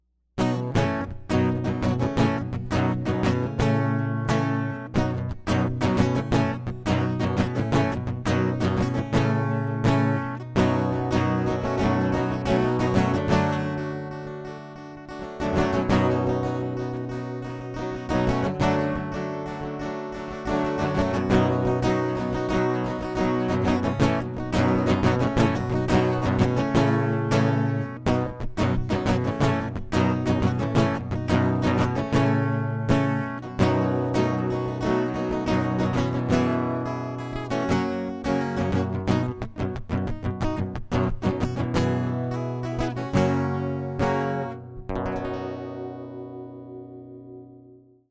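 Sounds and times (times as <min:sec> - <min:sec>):
acoustic music: 0:00.4 - 0:47.8.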